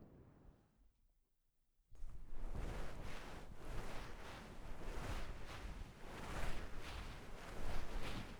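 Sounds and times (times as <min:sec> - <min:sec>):
towel massage ASMR: 0:02.0 - 0:08.3.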